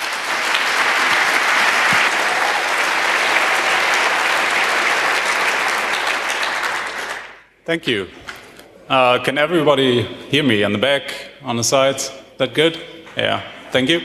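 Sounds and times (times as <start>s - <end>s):
audience applause: 0.0s - 7.4s
speech: 7.7s - 8.2s, 8.9s - 14.0s.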